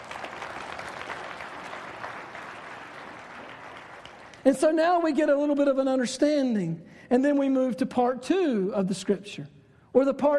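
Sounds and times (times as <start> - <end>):
audience clapping: 0.0 - 4.8
speech: 4.4 - 10.3.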